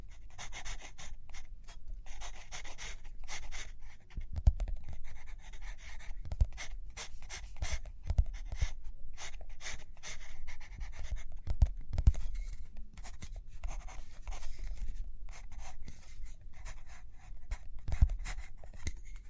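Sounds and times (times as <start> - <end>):
pen or pencil writing and drawing on paper: 0.1 - 1.5, 2.1 - 11.5, 12.1 - 19.2.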